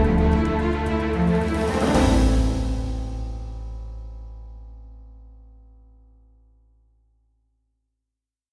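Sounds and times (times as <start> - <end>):
epic motivational music: 0.0 - 4.3.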